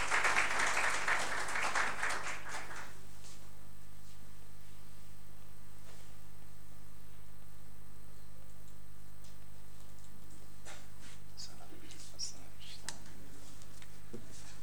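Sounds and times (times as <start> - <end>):
audience applauding: 0.0 - 3.0.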